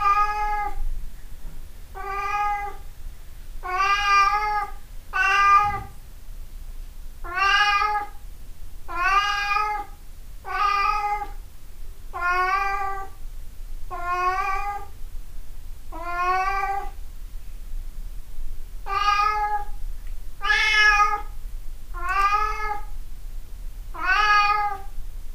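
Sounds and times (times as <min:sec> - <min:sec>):
cat meowing insistently: 0:00.0 - 0:00.8, 0:02.0 - 0:02.8, 0:03.6 - 0:05.9, 0:07.2 - 0:08.1, 0:08.9 - 0:09.9, 0:10.5 - 0:11.4, 0:12.2 - 0:13.2, 0:18.9 - 0:19.7, 0:20.4 - 0:21.3, 0:22.0 - 0:22.9, 0:24.0 - 0:24.9
faint low rumble: 0:00.0 - 0:25.3.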